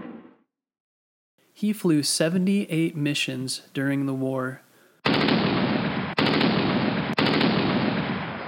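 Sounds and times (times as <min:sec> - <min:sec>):
speech: 0:01.6 - 0:04.7
rapid gunfire shooting at airplane: 0:05.0 - 0:08.4.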